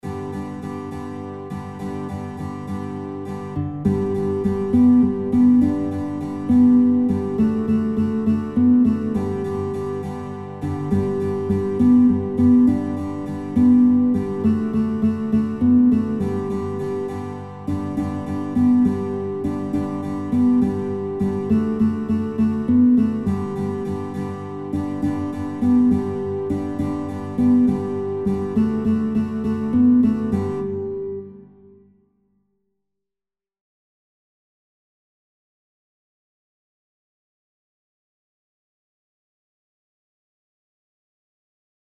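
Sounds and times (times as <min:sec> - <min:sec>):
guitar: 0:00.0 - 0:32.0.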